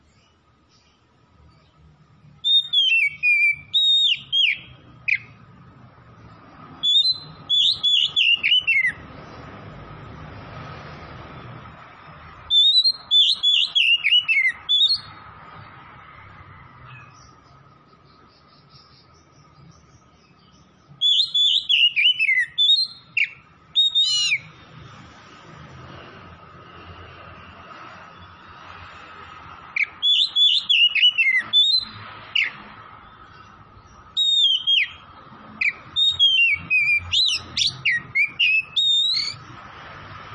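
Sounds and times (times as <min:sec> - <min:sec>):
Oriental magpie-robin singing: 0:00.0 - 0:05.4, 0:06.7 - 0:09.4, 0:12.4 - 0:15.2, 0:16.9 - 0:24.6, 0:29.7 - 0:32.6, 0:33.2 - 0:39.6.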